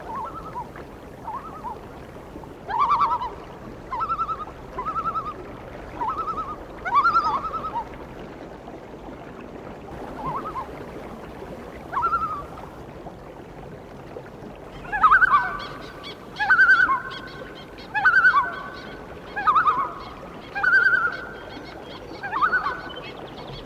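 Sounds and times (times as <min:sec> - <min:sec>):
loon calling: 0:00.0 - 0:01.8, 0:02.7 - 0:08.0, 0:10.0 - 0:10.7, 0:11.9 - 0:12.6, 0:14.8 - 0:23.2.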